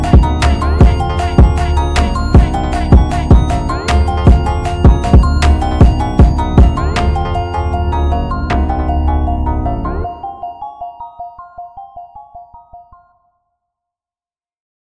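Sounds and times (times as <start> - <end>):
sped-up Brazilian funk phonk music: 0.0 - 11.8.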